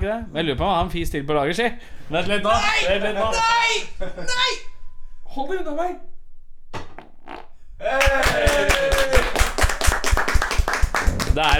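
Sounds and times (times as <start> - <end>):
speech: 0.0 - 4.7, 5.4 - 6.1, 7.8 - 9.2, 11.4 - 11.5
hand clapping: 7.0 - 11.5.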